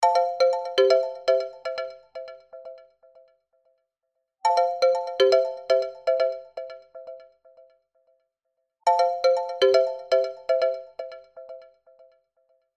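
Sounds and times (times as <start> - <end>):
ringtone: 0.0 - 2.9, 4.5 - 7.2, 8.9 - 11.8.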